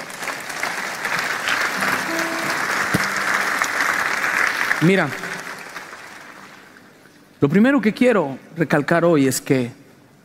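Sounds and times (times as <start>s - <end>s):
audience applause: 0.0s - 7.0s
faint sustained tones: 1.8s - 4.6s
speech: 4.8s - 5.2s, 7.4s - 9.8s.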